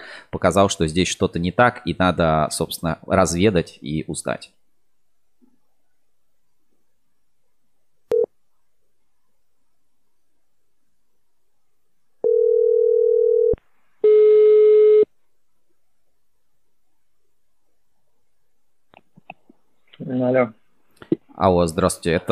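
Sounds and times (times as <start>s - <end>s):
speech: 0.3s - 4.6s, 21.4s - 22.3s
telephone ringback tone on an outgoing call: 12.2s - 15.1s.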